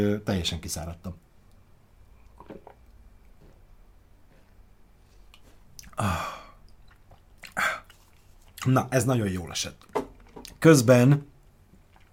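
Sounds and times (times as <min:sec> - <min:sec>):
speech: 0:00.0 - 0:01.2, 0:06.0 - 0:06.4, 0:08.6 - 0:11.3
person drinking water, gulping: 0:02.2 - 0:03.0, 0:05.3 - 0:08.6, 0:11.8 - 0:12.1.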